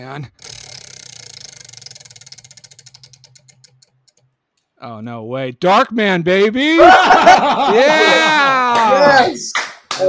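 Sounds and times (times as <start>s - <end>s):
speech: 0.0s - 0.5s, 4.8s - 10.0s
prize wheel spinning with ticking pointer: 0.2s - 4.3s
laughter: 6.6s - 9.5s.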